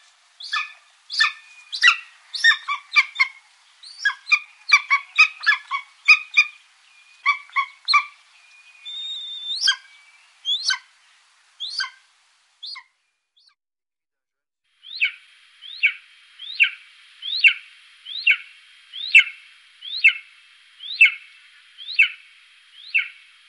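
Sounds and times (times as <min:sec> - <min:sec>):
golden eagle calling with sharp yelps: 0:00.4 - 0:06.6, 0:07.2 - 0:08.2, 0:08.8 - 0:10.9, 0:11.6 - 0:12.0, 0:12.6 - 0:12.9, 0:14.9 - 0:22.2.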